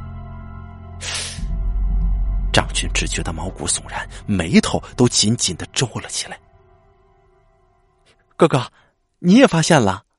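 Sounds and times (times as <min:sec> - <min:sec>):
balloon deflating with a long hiss: 0:01.0 - 0:01.5
speech: 0:02.8 - 0:06.5, 0:08.4 - 0:10.0.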